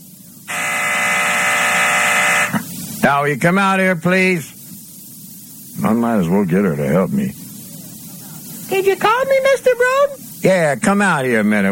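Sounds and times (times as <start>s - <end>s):
low hum: 0.5s - 2.6s
office intercom buzzer: 0.5s - 2.7s
speech: 3.0s - 4.5s, 5.8s - 7.4s, 8.7s - 11.6s.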